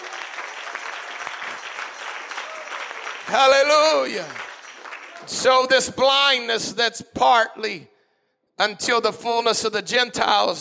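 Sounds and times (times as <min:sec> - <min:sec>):
audience clapping hands: 0:00.0 - 0:05.8
speech: 0:03.3 - 0:04.4, 0:05.2 - 0:07.9, 0:08.6 - 0:10.5.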